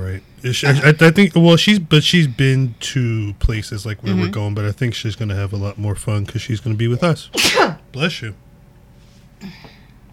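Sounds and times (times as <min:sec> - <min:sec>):
speech: 0:00.2 - 0:08.4, 0:09.4 - 0:09.7
person sneezing: 0:07.3 - 0:07.8.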